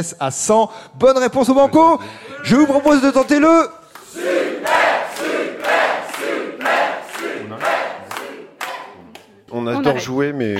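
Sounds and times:
speech: 0:00.0 - 0:05.4, 0:09.5 - 0:10.5
studio audience clapping: 0:02.7 - 0:09.5.

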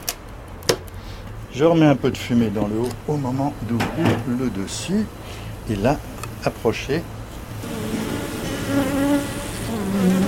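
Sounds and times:
speech: 0:01.5 - 0:07.8
honeybees buzzing inside an opened smoked beehive: 0:07.6 - 0:10.2.

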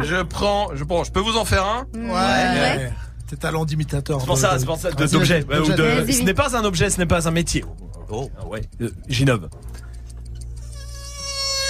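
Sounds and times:
speech: 0:00.0 - 0:09.8
voice imitating a fly: 0:10.6 - 0:11.6.

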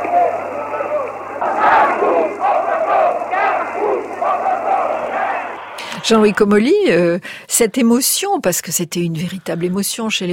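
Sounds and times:
large crowd shouting and yelling as riot police charge: 0:00.0 - 0:06.9
speech: 0:06.0 - 0:10.3.

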